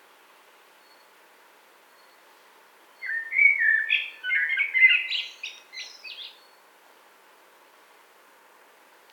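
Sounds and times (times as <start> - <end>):
common blackbird song: 3.0 - 6.6.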